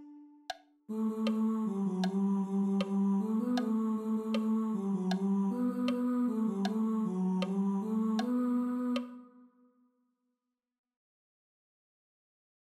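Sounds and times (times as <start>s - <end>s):
tenors singing: 0.9s - 9.3s.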